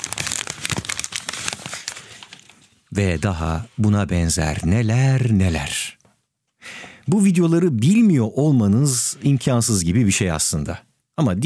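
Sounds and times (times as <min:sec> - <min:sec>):
paper crinkled in the hand: 0:00.0 - 0:02.9
speech: 0:03.0 - 0:05.9, 0:07.1 - 0:11.4.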